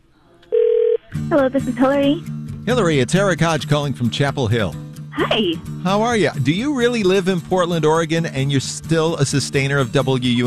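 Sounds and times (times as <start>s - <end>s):
telephone ringing with an incoming call to a public radio fund drive: 0.5s - 1.1s
speech: 1.3s - 10.4s.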